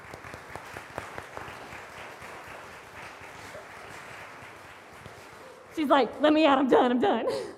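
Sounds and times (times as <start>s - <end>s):
audience applause: 0.0s - 5.9s
speech: 5.8s - 7.5s.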